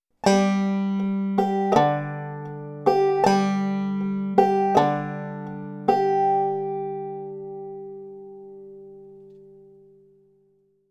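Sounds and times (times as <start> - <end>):
rest strokes and bum ditty strumming: 0.2 - 9.9.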